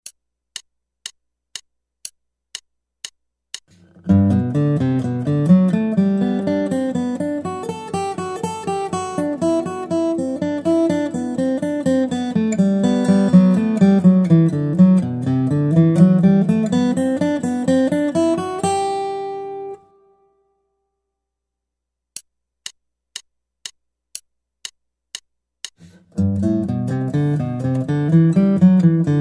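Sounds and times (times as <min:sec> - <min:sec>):
guitar: 0:03.8 - 0:20.4, 0:25.8 - 0:29.1.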